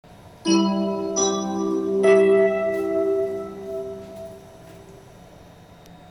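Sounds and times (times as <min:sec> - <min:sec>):
chime: 0:00.5 - 0:05.1.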